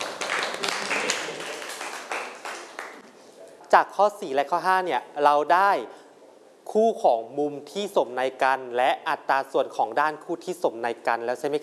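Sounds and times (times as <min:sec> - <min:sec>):
classroom clapping for a student: 0:00.0 - 0:03.1
speech: 0:03.7 - 0:06.0, 0:06.7 - 0:11.6.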